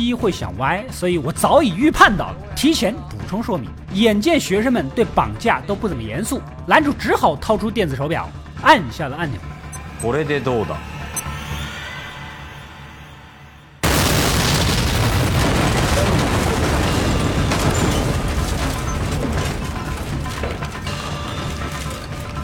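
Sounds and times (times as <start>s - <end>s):
speech: 0.0s - 10.9s
crackling debris: 13.8s - 22.4s
explosion with rumbling roar: 13.8s - 22.4s.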